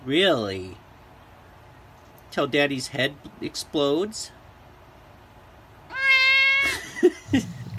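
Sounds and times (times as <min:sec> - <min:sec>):
speech: 0:00.0 - 0:00.8, 0:02.3 - 0:04.4, 0:06.6 - 0:07.5
cat meowing loudly: 0:05.9 - 0:06.8.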